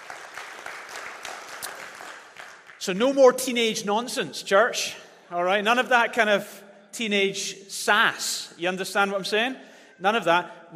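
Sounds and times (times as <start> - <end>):
audience applause: 0.0 - 2.8
speech: 2.8 - 10.7.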